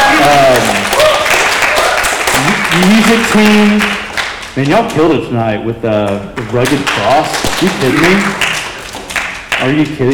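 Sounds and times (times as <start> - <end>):
round of applause: 0.0 - 4.5, 6.5 - 10.1
speech: 2.8 - 4.0, 4.6 - 8.5, 9.6 - 10.1.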